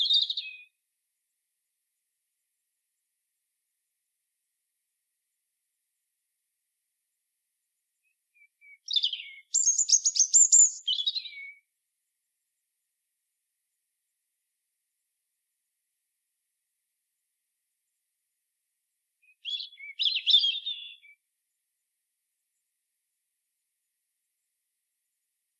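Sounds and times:
European robin twittering phrase: 0.0 - 0.6, 8.4 - 11.6, 19.2 - 21.1.

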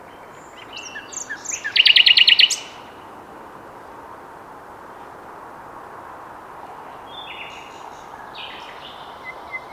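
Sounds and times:
Common nightingale song: 0.0 - 3.0, 6.0 - 9.7.

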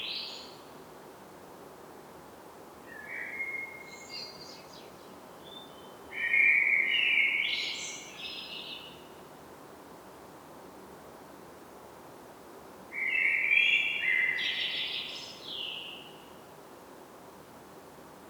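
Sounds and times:
common blackbird song: 0.0 - 0.6, 2.9 - 9.1, 13.0 - 16.3
soft hiss: 0.0 - 18.2.

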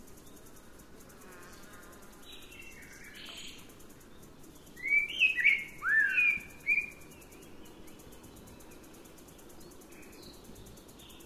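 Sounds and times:
Eurasian blackbird fluty whistles: 4.8 - 7.0.

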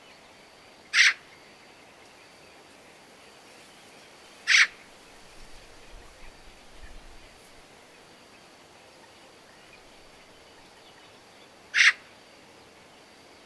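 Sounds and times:
Eurasian magpie Pica pica calling with harsh noisy rasps: 0.9 - 1.2, 4.5 - 4.8, 11.7 - 12.0.

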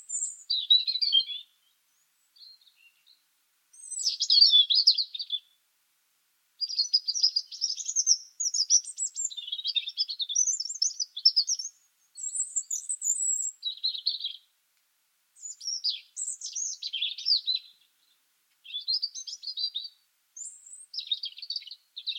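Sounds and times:
European robin song: 0.0 - 3.2, 3.8 - 5.6, 6.6 - 14.5, 15.4 - 22.1.

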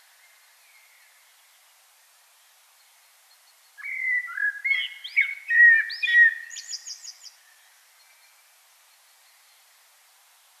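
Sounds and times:
common blackbird singing: 3.8 - 7.4.

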